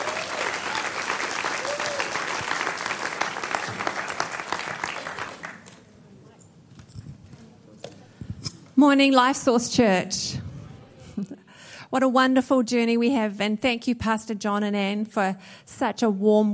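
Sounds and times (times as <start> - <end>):
church audience applause welcoming a speaker to the stage: 0.0 - 5.8
speech: 8.8 - 10.4, 11.9 - 16.5.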